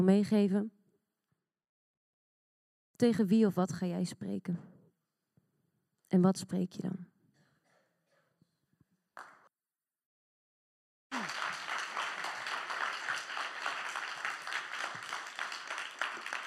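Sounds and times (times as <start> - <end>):
speech: 0.0 - 0.8, 3.0 - 4.7, 6.1 - 7.1
audience applause: 11.1 - 16.4.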